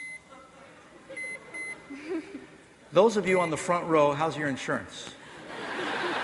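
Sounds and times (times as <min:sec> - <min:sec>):
microwave oven beeps while being programmed for two minutes and started: 0:00.0 - 0:00.2, 0:01.2 - 0:01.8
laughter: 0:01.0 - 0:02.6, 0:05.2 - 0:06.2
speech: 0:02.1 - 0:05.2.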